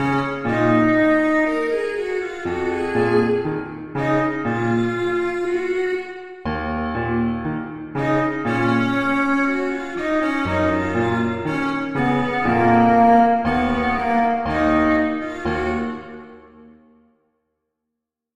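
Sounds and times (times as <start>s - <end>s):
cello in a duet: 0.0s - 16.6s
piano in a duet: 0.0s - 17.0s.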